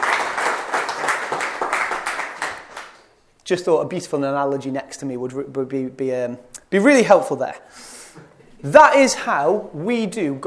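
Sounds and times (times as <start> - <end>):
room full of people applauding: 0.0 - 3.0
speech: 3.5 - 8.0, 8.6 - 10.4.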